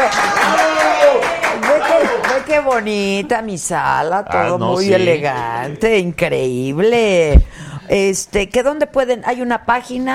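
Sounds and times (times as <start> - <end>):
applause: 0.0 - 2.9
speech: 2.6 - 10.1.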